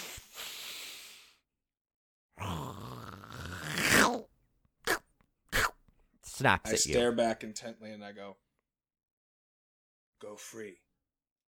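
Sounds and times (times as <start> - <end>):
voice imitating a creature's big sniff: 0.0 - 1.4, 2.4 - 4.2, 4.9 - 5.8
speech: 6.4 - 8.5, 10.2 - 10.8.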